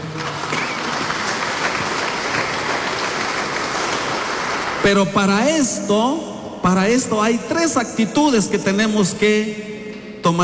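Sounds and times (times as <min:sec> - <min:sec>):
audience clapping hands: 0:00.0 - 0:05.4
speech: 0:04.8 - 0:10.4.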